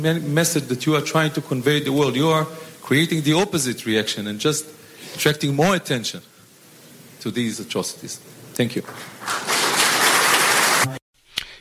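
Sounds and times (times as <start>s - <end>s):
speech: 0.0s - 6.3s, 7.2s - 9.5s
crowd applause: 8.8s - 11.0s.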